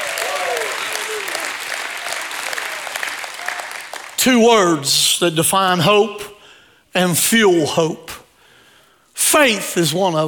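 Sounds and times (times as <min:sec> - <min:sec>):
audience applause: 0:00.0 - 0:04.2
speech: 0:04.2 - 0:06.3, 0:06.9 - 0:08.2, 0:09.3 - 0:10.2.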